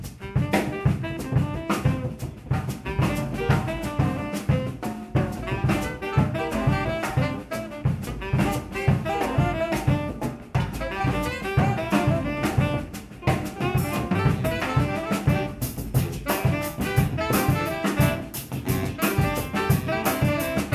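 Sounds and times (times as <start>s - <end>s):
saxophone ensemble: 0.1s - 20.7s.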